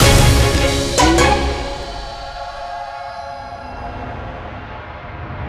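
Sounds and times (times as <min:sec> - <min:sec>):
scatter win sound: 0:00.0 - 0:02.7.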